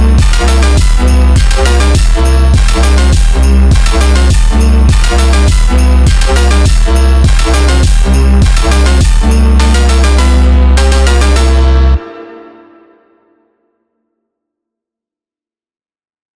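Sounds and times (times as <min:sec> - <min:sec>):
Christmas phonk house music: 0:00.0 - 0:12.6.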